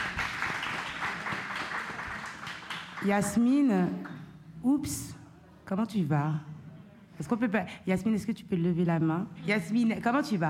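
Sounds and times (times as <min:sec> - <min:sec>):
crowd applauding: 0:00.0 - 0:03.4
speech: 0:03.0 - 0:06.6, 0:07.2 - 0:10.4.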